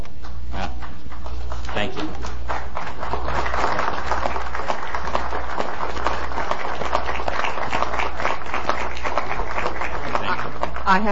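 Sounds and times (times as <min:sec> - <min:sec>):
supervisors applauding: 0:00.2 - 0:11.1
speech: 0:10.9 - 0:11.1.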